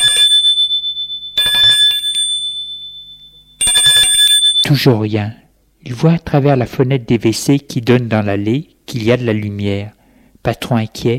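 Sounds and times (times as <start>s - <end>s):
apartment doorbell ringing: 0.0s - 4.8s
speech: 4.7s - 11.1s.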